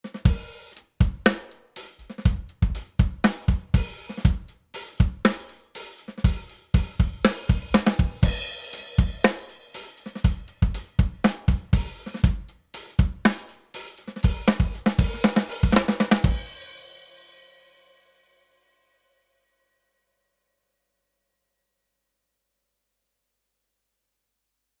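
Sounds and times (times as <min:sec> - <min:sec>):
slow drums at 110 Hz: 0:00.0 - 0:17.7.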